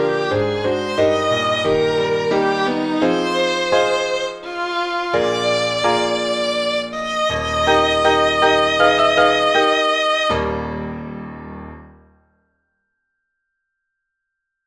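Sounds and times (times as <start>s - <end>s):
synth violin: 0.0s - 10.9s.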